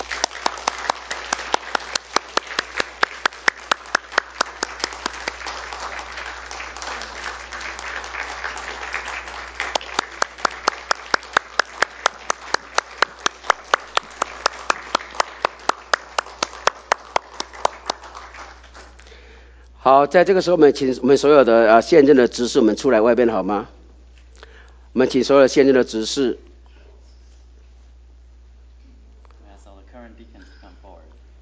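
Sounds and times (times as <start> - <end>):
crowd applause welcoming people: 0.0 - 19.3
speech: 19.9 - 23.8, 25.0 - 26.5.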